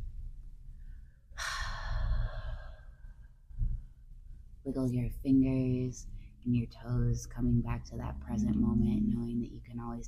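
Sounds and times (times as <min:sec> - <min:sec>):
deep breath in and out: 0:00.8 - 0:03.4
speech: 0:04.7 - 0:10.0.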